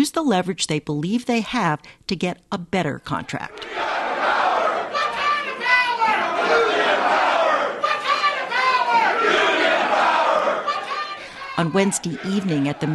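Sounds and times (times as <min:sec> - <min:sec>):
speech: 0:00.0 - 0:04.0, 0:11.6 - 0:12.9
union members chanting and shouting: 0:03.4 - 0:12.9.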